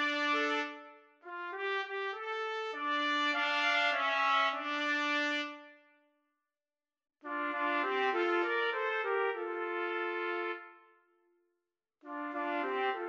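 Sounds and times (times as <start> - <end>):
trumpet trio playing: 0.0 - 0.9, 1.5 - 5.7, 7.3 - 10.8, 12.1 - 13.0.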